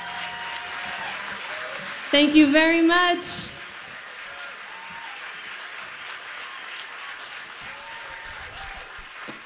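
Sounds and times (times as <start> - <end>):
faint cheers: 0.0 - 2.0, 3.9 - 5.5, 7.6 - 9.2
audience applause: 0.0 - 9.4
speech: 2.1 - 3.5.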